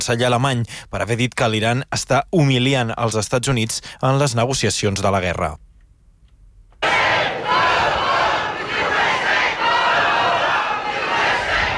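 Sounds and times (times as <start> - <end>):
speech: 0.0 - 5.7
protest crowd shouting against the United States: 6.8 - 11.7.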